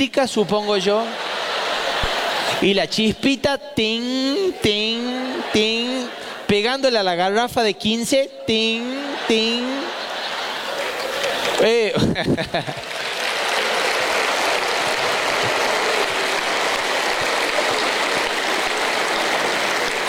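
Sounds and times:
speech: 0.0 - 1.4, 2.6 - 9.8, 11.6 - 12.9
laughter: 0.0 - 2.9, 3.8 - 7.2, 8.4 - 20.0
audience applause: 0.8 - 2.7, 8.8 - 20.0.

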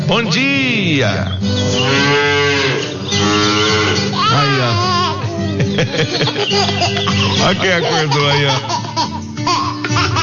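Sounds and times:
speech: 0.1 - 2.3, 4.3 - 5.0, 5.6 - 9.1
cow Mimosa mooing at milking time: 1.7 - 4.6
laughter: 4.2 - 10.2.

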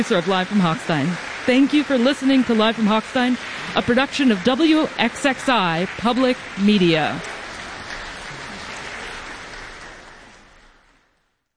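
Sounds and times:
speech: 0.0 - 7.3
audience applause after performance: 0.0 - 11.1.

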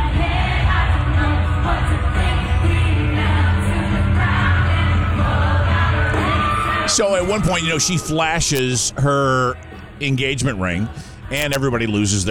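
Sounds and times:
crowd singing: 0.0 - 12.2
concert crowd cheering: 3.4 - 9.6
speech: 7.0 - 12.2.

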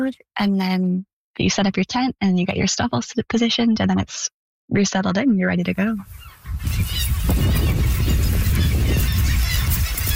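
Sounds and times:
speech: 0.0 - 8.0
calls of a huge seabird colony: 6.1 - 10.1.

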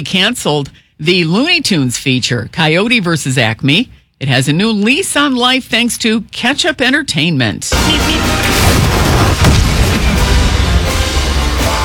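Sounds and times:
speech: 0.0 - 9.5
cartoon explosion sound effects: 7.7 - 11.2
sharp bang: 7.8 - 11.4.

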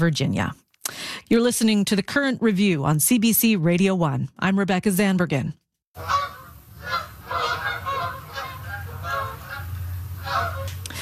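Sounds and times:
speech: 0.0 - 0.6, 1.3 - 6.1
Canada geese honking while migrating south: 6.0 - 10.8.

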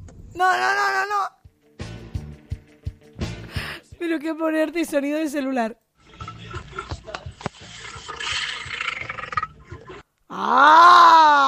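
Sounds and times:
speech: 0.4 - 1.4, 4.0 - 5.8, 10.3 - 11.4
child imitating a lion's roar: 10.3 - 11.4.

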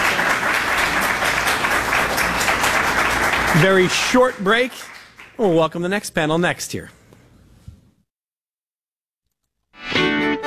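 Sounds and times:
audience applause: 0.0 - 5.5
speech: 3.6 - 7.0.

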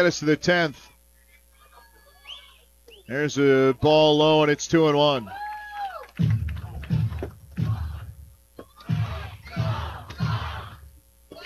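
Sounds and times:
speech: 0.0 - 0.9, 3.1 - 5.5
baseball stadium crowd at Four Winds Field: 5.2 - 11.4.

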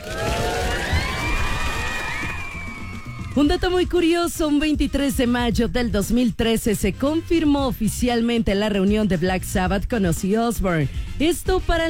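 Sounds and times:
applause and cheering: 0.0 - 4.0
speech: 3.4 - 11.8.

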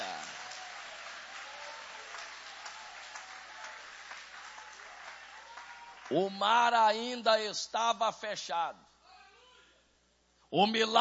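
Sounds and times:
audience applauding: 0.0 - 6.2
speech: 6.1 - 8.9, 10.5 - 10.9.

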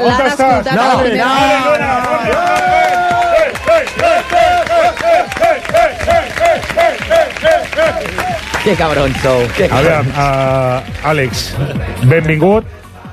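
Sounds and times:
speech: 0.0 - 2.6, 8.6 - 12.8
studio audience applause: 0.4 - 13.1
whoops and cheering: 2.1 - 9.5.

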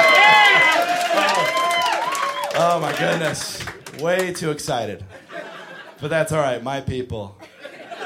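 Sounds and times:
audience screaming: 0.0 - 3.3
audience cheering: 0.0 - 4.3
speech: 3.0 - 5.2, 6.0 - 7.4
laughter: 5.1 - 6.0, 7.4 - 8.0.

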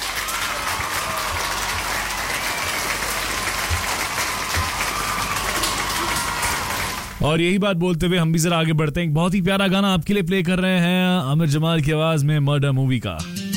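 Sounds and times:
crowd applause: 0.0 - 7.2
speech: 7.2 - 13.4.

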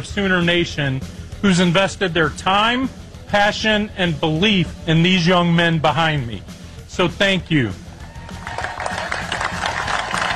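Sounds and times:
speech: 0.0 - 7.8
celebratory baseball-style clapping at a championship celebration: 8.3 - 10.3.

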